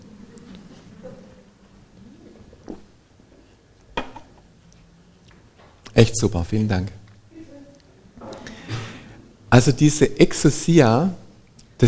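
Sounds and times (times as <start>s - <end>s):
low steady hum: 0.0s - 11.8s
glass handling: 4.0s - 4.4s
speech: 6.0s - 7.0s, 9.6s - 11.2s.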